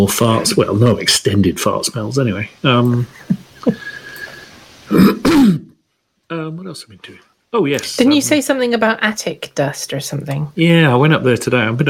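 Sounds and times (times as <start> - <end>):
speech: 0.0 - 4.0, 4.9 - 5.7, 6.3 - 11.8
person coughing: 4.9 - 5.8.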